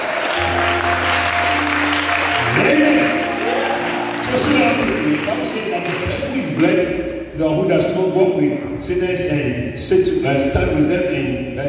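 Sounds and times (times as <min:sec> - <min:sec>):
audience clapping: 0:00.0 - 0:07.0
low instrument tones: 0:00.4 - 0:07.7
speech: 0:06.6 - 0:11.6.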